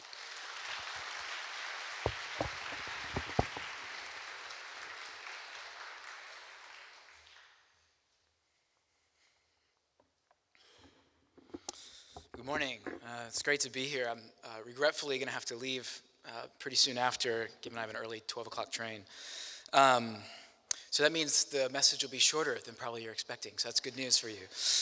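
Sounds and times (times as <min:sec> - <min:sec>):
audience applause welcoming a speaker: 0:00.0 - 0:07.2
faint rustles and taps: 0:02.1 - 0:03.9
speech: 0:12.5 - 0:24.7.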